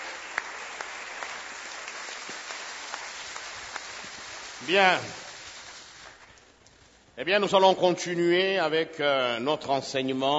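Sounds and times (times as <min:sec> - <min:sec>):
church congregation applauding the word of God: 0:00.0 - 0:06.5
speech: 0:04.6 - 0:05.2, 0:07.2 - 0:10.3.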